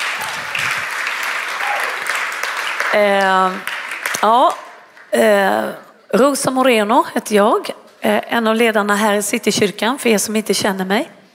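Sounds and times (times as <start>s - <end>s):
audience applause: 0.0s - 5.1s
speech: 2.9s - 11.2s.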